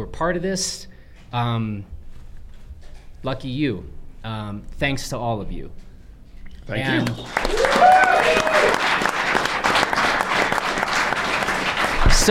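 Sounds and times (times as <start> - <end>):
speech: 0.0 - 1.9, 3.2 - 5.9, 6.7 - 9.0
audience clapping: 6.8 - 12.2.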